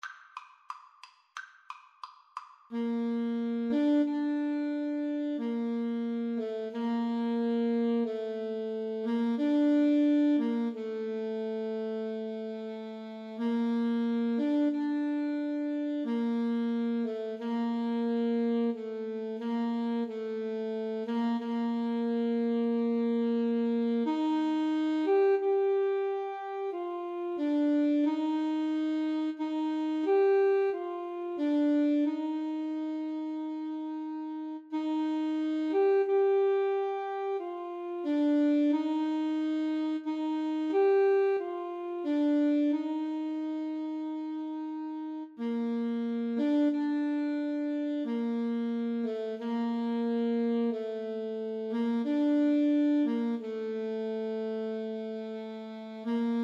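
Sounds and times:
largo flute and saxophone duet: 0:02.7 - 0:56.4.

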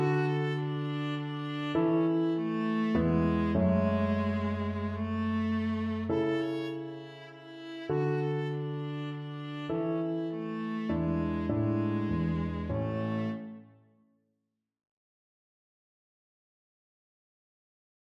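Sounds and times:
viola playing a minuet: 0:00.0 - 0:13.7.

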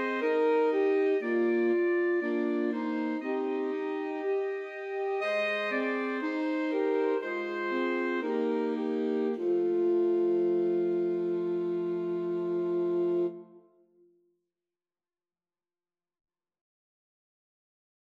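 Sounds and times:
alto saxophone quartet: 0:00.0 - 0:13.6.

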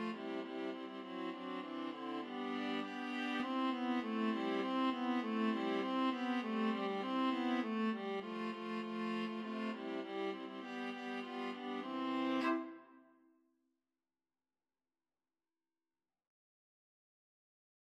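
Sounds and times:
viola trio playing: 0:00.0 - 0:12.7.

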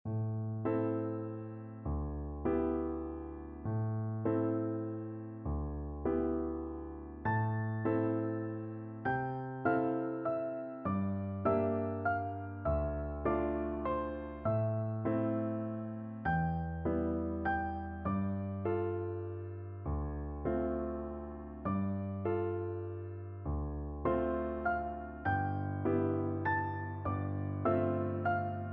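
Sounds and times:
piano duet: 0:00.1 - 0:28.7.

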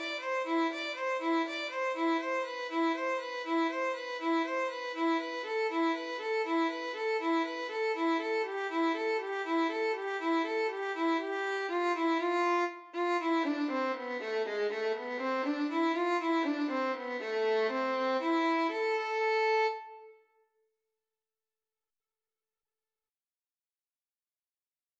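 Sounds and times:
violin and cello duet: 0:00.0 - 0:20.0.

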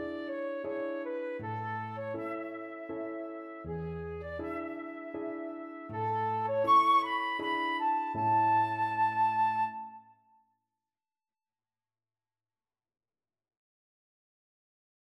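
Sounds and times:
flute: 0:00.0 - 0:10.4.

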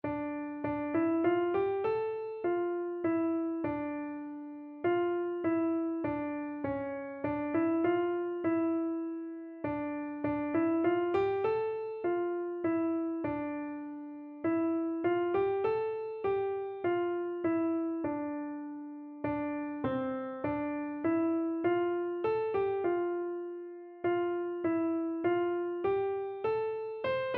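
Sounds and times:
keyboard: 0:00.0 - 0:27.3.

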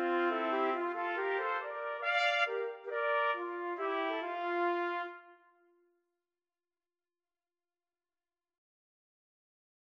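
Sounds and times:
trumpet trio playing: 0:00.0 - 0:05.4.

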